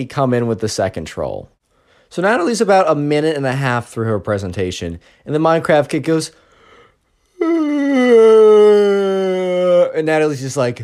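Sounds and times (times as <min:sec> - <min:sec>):
speech: 0:00.0 - 0:06.4, 0:07.4 - 0:09.1, 0:09.8 - 0:10.8
voice imitating a loud exaggerated yawn: 0:06.8 - 0:10.0.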